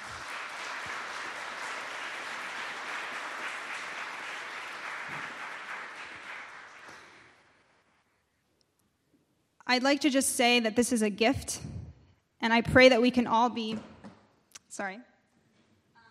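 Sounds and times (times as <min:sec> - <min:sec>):
crowd applauding: 0:00.0 - 0:07.6
speech: 0:09.7 - 0:11.8, 0:12.4 - 0:13.9, 0:14.7 - 0:15.1.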